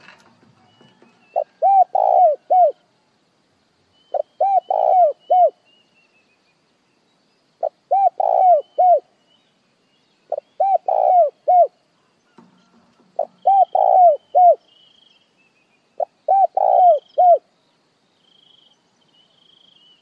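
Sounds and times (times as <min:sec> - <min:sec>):
spotted dove cooing: 0:00.0 - 0:02.8, 0:04.1 - 0:05.6, 0:07.6 - 0:09.1, 0:10.3 - 0:11.8, 0:12.6 - 0:14.6, 0:16.0 - 0:17.5.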